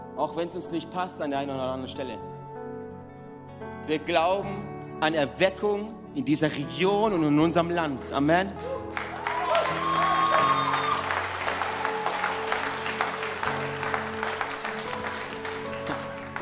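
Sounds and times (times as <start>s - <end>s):
speech: 0.2s - 2.4s, 3.9s - 9.0s
faint cheer: 8.6s - 13.7s
audience applause: 8.9s - 16.3s
sustained organ or keyboard chords: 10.4s - 16.3s.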